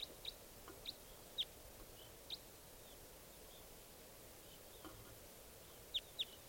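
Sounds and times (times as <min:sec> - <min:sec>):
wild bird chirps: 0:00.0 - 0:03.8, 0:04.4 - 0:05.0, 0:05.7 - 0:06.4
low hiss: 0:00.0 - 0:06.4.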